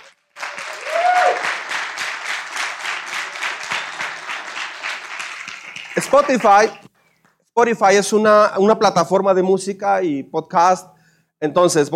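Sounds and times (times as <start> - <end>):
audience applause: 0.0 - 6.8
speech: 6.0 - 6.9, 7.6 - 11.9.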